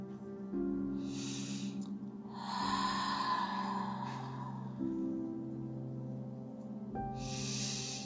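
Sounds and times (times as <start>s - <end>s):
soft sustained musical drone: 0.0s - 8.0s
slow deep breaths during a guided meditation: 1.0s - 5.6s, 7.2s - 8.0s.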